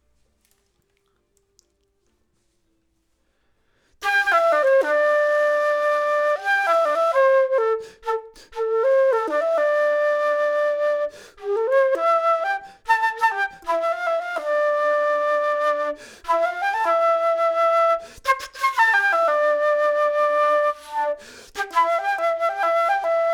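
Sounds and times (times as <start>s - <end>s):
flute: 4.0s - 23.3s.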